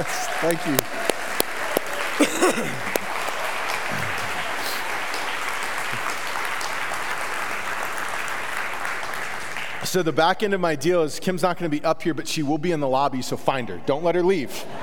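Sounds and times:
speech: 0.0 - 1.0, 2.2 - 3.0, 9.9 - 14.8
audience clapping: 0.0 - 10.0.

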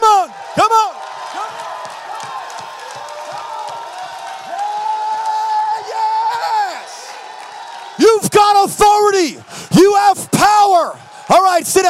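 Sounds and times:
crowd shouting and cheering: 0.0 - 11.8
rhythmic clapping: 1.2 - 5.6
speech: 11.3 - 11.8.

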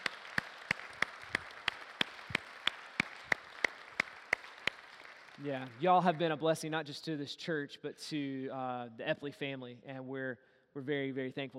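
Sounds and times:
audience applauding: 0.0 - 6.4
speech: 5.4 - 11.5.

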